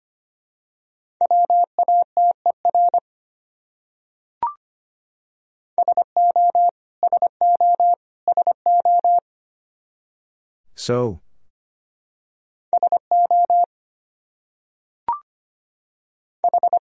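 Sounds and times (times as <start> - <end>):
Morse code tones at 25 wpm: 1.2 - 3.0, 5.8 - 9.2, 12.8 - 13.7, 16.4 - 16.7
speech: 10.8 - 11.2.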